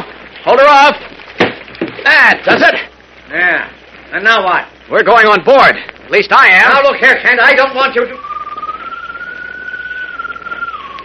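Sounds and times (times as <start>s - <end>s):
speech: 0.5s - 1.1s, 2.2s - 8.2s
bird call: 8.0s - 11.0s.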